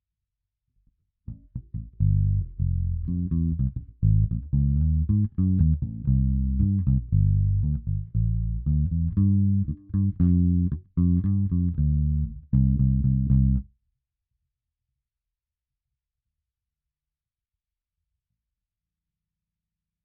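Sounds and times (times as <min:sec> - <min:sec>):
bass: 0:01.3 - 0:13.7.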